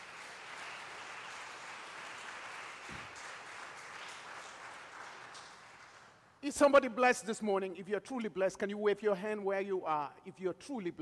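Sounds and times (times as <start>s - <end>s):
audience clapping hands: 0.0s - 6.4s
speech: 6.4s - 10.9s.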